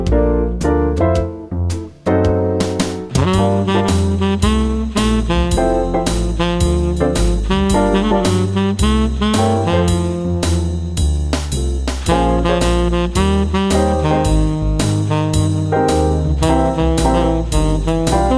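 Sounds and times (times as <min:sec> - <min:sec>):
jazz melody: 0:00.0 - 0:18.3.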